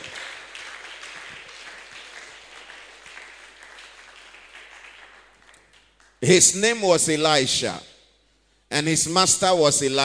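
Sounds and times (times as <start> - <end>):
audience applause: 0.0 - 5.9
speech: 6.2 - 7.9, 8.8 - 10.0.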